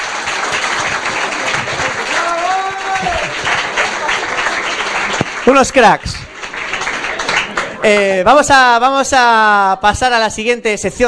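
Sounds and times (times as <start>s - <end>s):
audience applause: 0.0s - 8.2s
speech: 5.5s - 6.2s, 7.8s - 11.0s.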